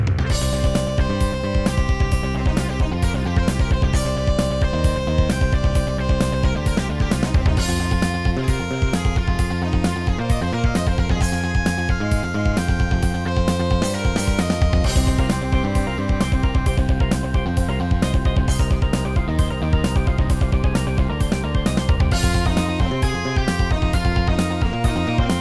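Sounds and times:
Yamaha SHS-500 keytar playing: 0:00.2 - 0:25.3.

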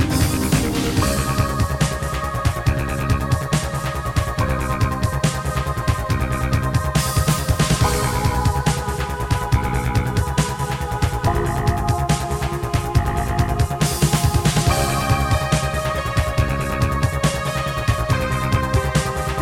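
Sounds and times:
synthesizer: 0:00.0 - 0:19.4.

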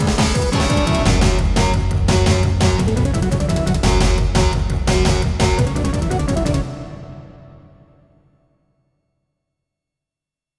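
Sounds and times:
Yamaha CBX-T3 synthesizer intro: 0:00.2 - 0:08.1.

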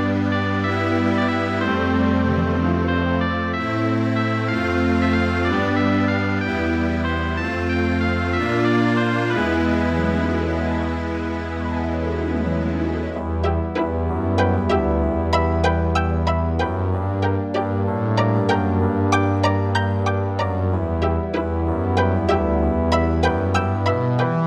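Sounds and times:
Roland PMA-5 music track: 0:00.0 - 0:24.4.

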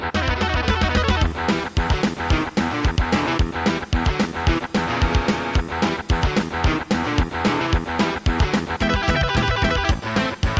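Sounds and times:
Roland SC-8820 sound module music: 0:00.2 - 0:10.5.

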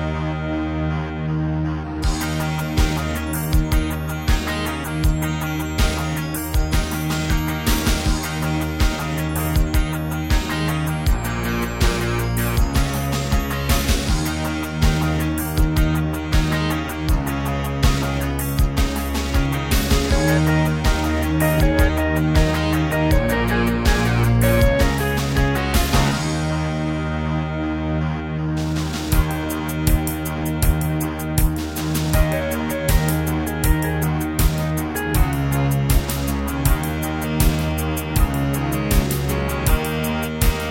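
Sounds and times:
Terratec MiniWaveSystem WT64 wavetable music: 0:00.0 - 0:40.6.

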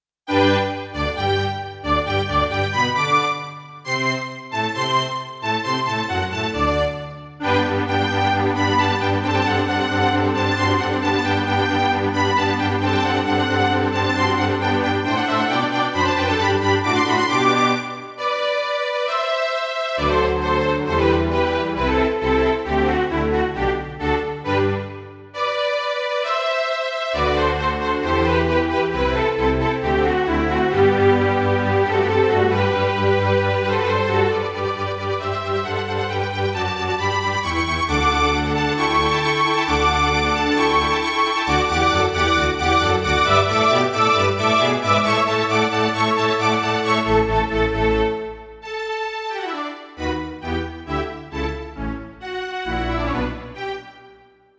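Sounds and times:
Roland SC-88ST Pro sound module: 0:00.3 - 0:54.3.

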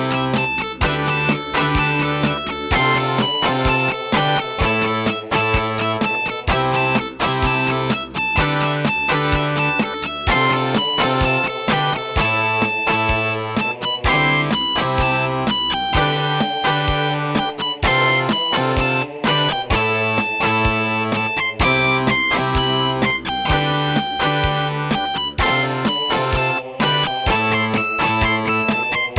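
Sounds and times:
sound module synthesizer wave tone: 0:00.0 - 0:29.1.

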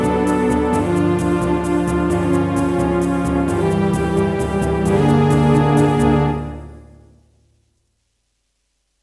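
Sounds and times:
Roland SD-50 wavetable synthesizer sounds in GM2 mode: 0:00.0 - 0:07.2.

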